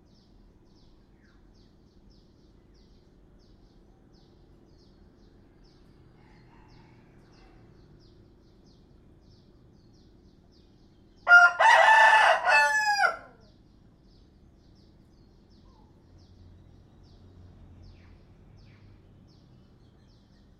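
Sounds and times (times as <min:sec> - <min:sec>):
rooster crowing: 0:06.2 - 0:07.7, 0:11.2 - 0:13.5.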